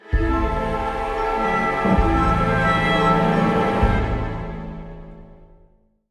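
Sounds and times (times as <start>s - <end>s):
musical stinger: 0.0s - 5.2s.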